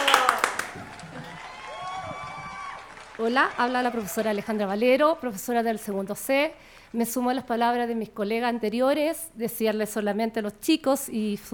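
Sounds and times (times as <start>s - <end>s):
scattered hand claps: 0.0s - 4.8s
speech: 3.2s - 11.5s.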